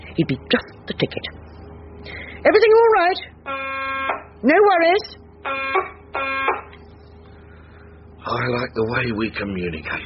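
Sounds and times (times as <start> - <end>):
speech: 0.2 - 6.6, 8.2 - 10.0
electronic buzzer tones: 3.4 - 4.3, 5.0 - 6.8.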